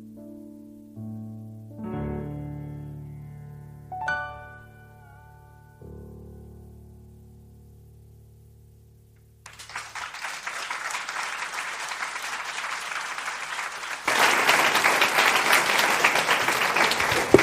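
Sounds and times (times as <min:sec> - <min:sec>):
audience applause: 0:09.5 - 0:17.4.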